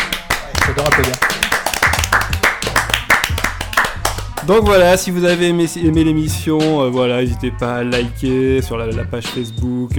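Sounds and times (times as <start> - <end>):
hands clapping: 0.0 - 4.6
speech: 0.8 - 1.4, 4.5 - 9.9.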